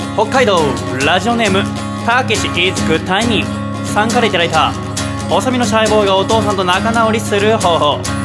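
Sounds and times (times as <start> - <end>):
radio jingle: 0.1 - 8.0
speech: 0.2 - 8.1.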